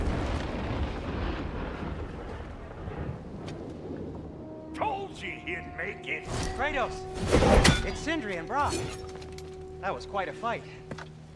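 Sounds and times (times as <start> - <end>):
lightning blast breaking an ice wall: 0.0 - 4.6
speech: 5.2 - 9.2, 9.8 - 11.1.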